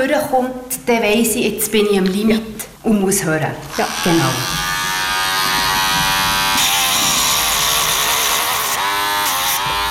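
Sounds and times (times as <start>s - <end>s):
speech: 0.0s - 4.7s
grinder filing down a dog's nails: 3.7s - 9.8s.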